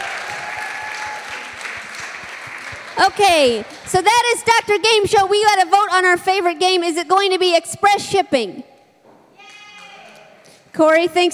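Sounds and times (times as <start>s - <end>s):
audience applause: 0.0s - 3.9s
speech: 3.0s - 8.7s, 10.8s - 11.3s.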